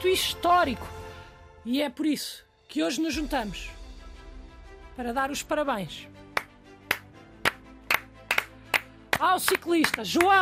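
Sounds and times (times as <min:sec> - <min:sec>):
speech: 0:00.0 - 0:01.0, 0:01.6 - 0:03.8, 0:05.0 - 0:06.2, 0:09.2 - 0:10.3
single pair of hands clapping: 0:06.3 - 0:10.3.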